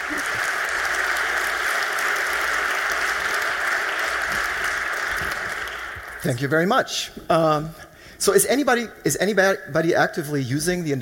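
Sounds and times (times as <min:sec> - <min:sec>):
audience applause: 0:00.0 - 0:06.4
speech: 0:06.2 - 0:10.9.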